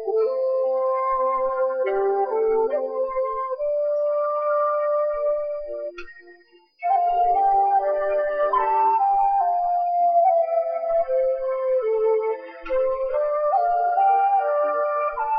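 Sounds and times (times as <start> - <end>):
Japanese flute: 0.0 - 15.3.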